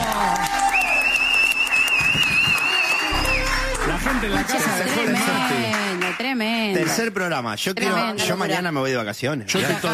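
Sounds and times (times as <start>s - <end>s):
loud applause: 0.0s - 6.9s
speech: 6.8s - 9.9s.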